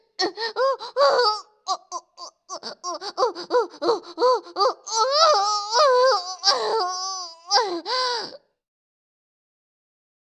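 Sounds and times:
person moaning: 0.2 - 8.4.

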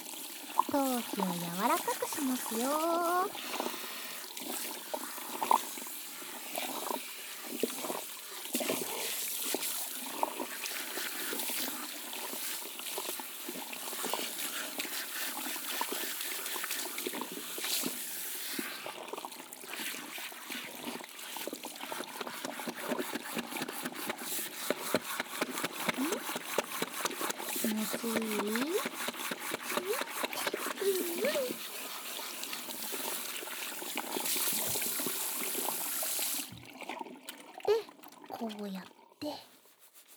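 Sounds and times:
running water wetting hair and scalp during a hair wash: 0.0 - 40.1
speech: 0.7 - 3.8.

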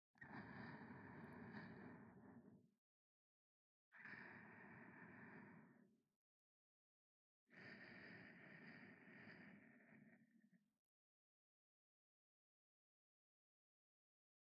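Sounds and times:
sleeping breathing: 0.2 - 2.6, 4.0 - 5.9, 7.5 - 10.5.

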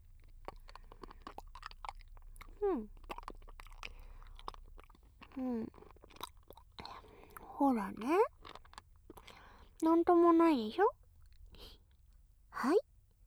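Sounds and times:
person chewing and crunching food: 0.0 - 9.8
speech: 2.6 - 3.0, 5.4 - 5.9, 7.6 - 8.3, 9.8 - 11.0, 12.6 - 12.8.

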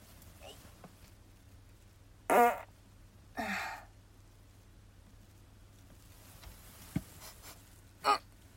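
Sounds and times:
farts: 2.3 - 2.7.

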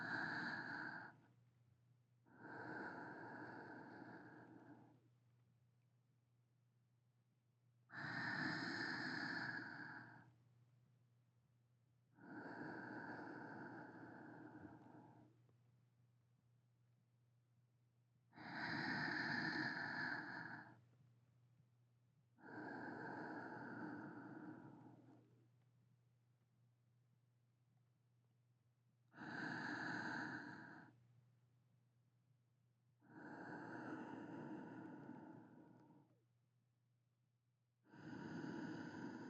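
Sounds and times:
sleeping breathing: 0.0 - 1.3, 2.3 - 5.0, 7.9 - 10.4, 12.2 - 15.3, 18.4 - 20.8, 22.4 - 25.3, 29.1 - 31.0, 33.0 - 36.1, 37.9 - 39.2.

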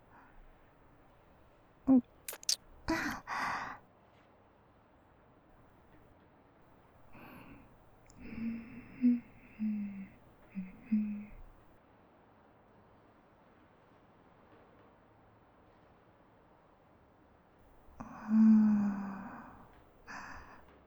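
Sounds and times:
kissing: 1.9 - 3.8, 7.1 - 11.6, 18.0 - 20.6.

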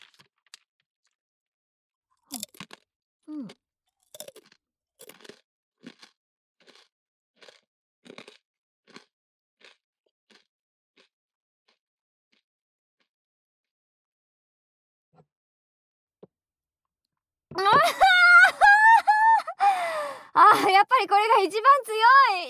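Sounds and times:
crunchy cheese snack and chocolate being eaten: 0.0 - 0.6, 2.3 - 11.1
laughter: 17.6 - 22.4
speech: 17.8 - 18.0.

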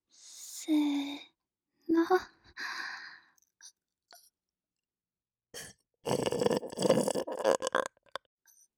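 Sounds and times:
speech: 0.7 - 0.9, 2.0 - 2.3
loud burps: 5.6 - 8.2.

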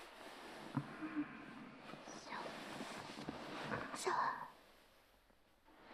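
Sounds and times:
fellatio sounds under a futon ASMR: 0.7 - 4.5.

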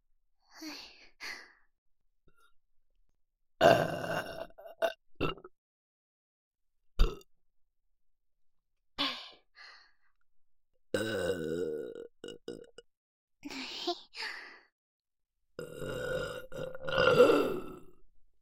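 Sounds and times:
person burping: 3.6 - 5.5, 7.0 - 7.3, 11.0 - 12.8, 15.6 - 18.0.

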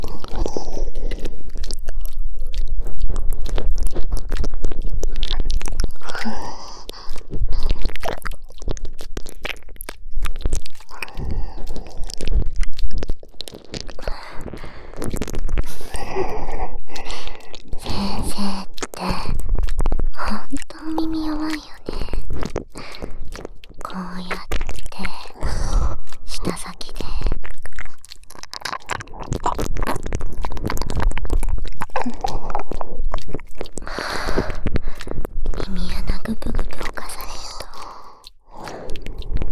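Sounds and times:
ear licking: 0.0 - 39.5
double whispering: 6.0 - 6.9, 15.6 - 16.4, 17.7 - 19.4, 20.2 - 22.2, 23.8 - 28.0, 35.6 - 37.9.

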